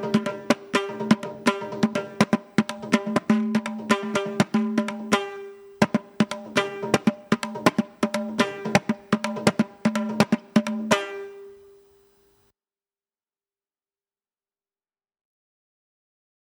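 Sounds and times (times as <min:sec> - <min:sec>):
carnatic music in thisra nadai: 0:00.0 - 0:12.1.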